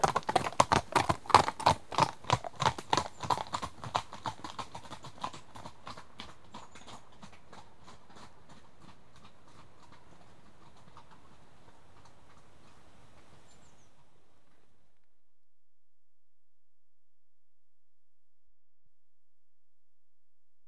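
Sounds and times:
one horse walking: 0:00.0 - 0:13.7.

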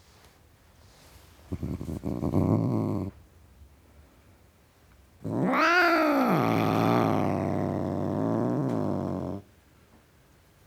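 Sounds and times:
male domestic tom cat growling: 0:01.5 - 0:03.2, 0:05.2 - 0:09.5.

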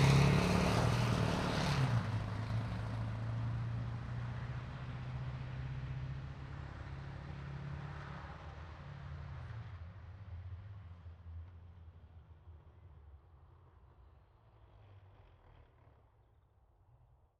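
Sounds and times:
Warrior IFV starting and driving away fast, semi-distant exterior: 0:00.0 - 0:06.0.

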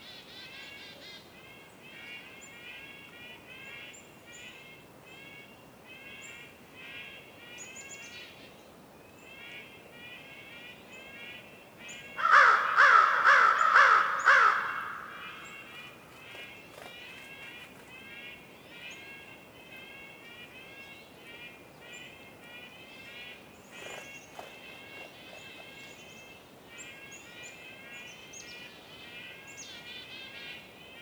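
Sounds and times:
crow cawing with echo in a winter forest in the North Laurentian woods, Canada: 0:12.1 - 0:25.7.

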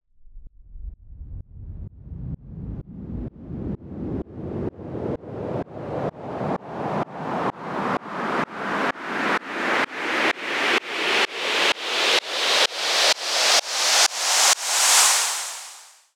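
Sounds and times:
medium white noise sweep: 0:04.1 - 0:16.1.

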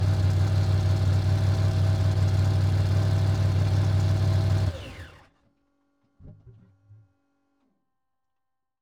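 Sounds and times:
Volvo 142 drag car engine starting, driving at medium speed, stopping and switching off: 0:00.0 - 0:05.2.

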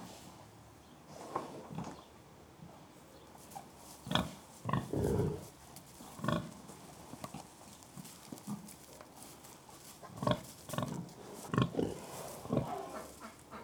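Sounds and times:
pigs grunting: 0:04.1 - 0:06.6, 0:10.0 - 0:13.6.

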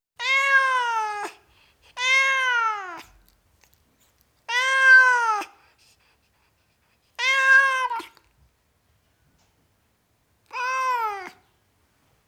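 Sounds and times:
tom cat meowing: 0:00.2 - 0:01.3, 0:02.0 - 0:03.2, 0:04.5 - 0:05.5, 0:07.2 - 0:08.2, 0:10.5 - 0:11.4.

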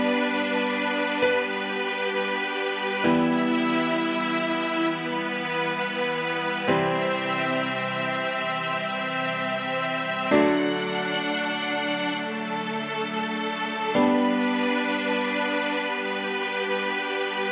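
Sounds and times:
sad song: 0:00.0 - 0:17.5.

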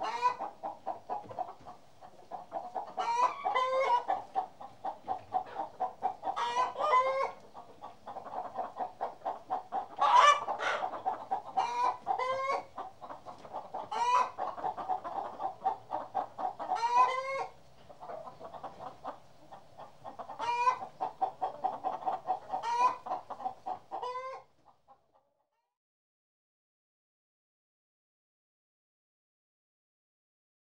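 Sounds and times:
hens in a hen house: 0:00.0 - 0:25.8.

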